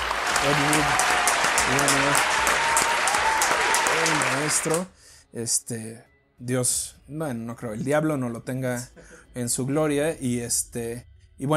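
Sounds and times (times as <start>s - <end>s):
audience applause: 0.0s - 4.9s
speech: 0.4s - 2.7s, 4.0s - 11.5s.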